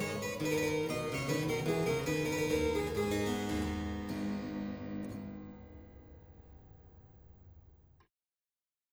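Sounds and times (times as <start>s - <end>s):
minuet: 0.0s - 5.2s.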